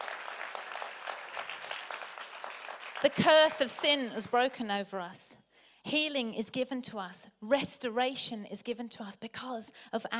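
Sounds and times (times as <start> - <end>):
audience applause: 0.0 - 3.8
speech: 3.0 - 10.1.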